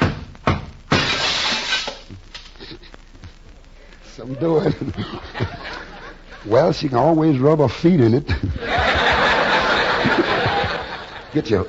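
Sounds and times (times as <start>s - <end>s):
knocks: 0.0s - 1.1s
glass perfume bottle breaking: 0.9s - 2.0s
speech: 4.2s - 5.8s, 6.4s - 8.7s, 11.4s - 11.6s
laughter: 4.3s - 6.6s, 8.3s - 11.6s.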